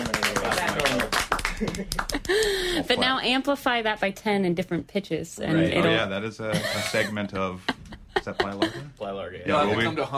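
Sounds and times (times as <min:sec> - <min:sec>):
hands clapping along: 0:00.0 - 0:02.6
speech: 0:01.6 - 0:10.1
laughter: 0:06.5 - 0:09.0.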